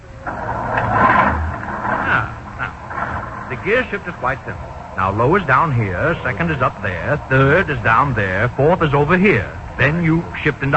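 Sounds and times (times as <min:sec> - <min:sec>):
car engine started with a large starter button: 0:00.0 - 0:10.7
speech: 0:03.6 - 0:10.7.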